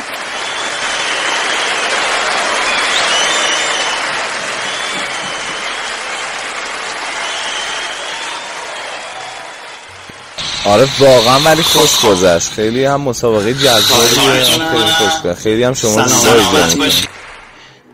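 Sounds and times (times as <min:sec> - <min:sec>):
applause: 0:00.0 - 0:10.4, 0:15.9 - 0:17.9
speech: 0:10.7 - 0:17.1.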